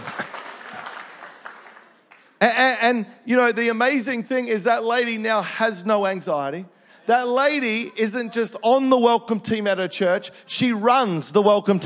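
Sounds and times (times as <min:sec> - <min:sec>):
crowd applauding: 0:00.0 - 0:02.4
speech: 0:02.5 - 0:11.8.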